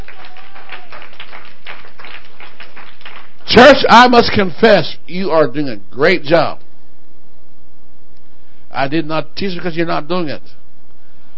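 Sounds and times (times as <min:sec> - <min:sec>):
audience clapping: 0:00.0 - 0:04.6
speech: 0:03.5 - 0:06.6, 0:08.8 - 0:10.6.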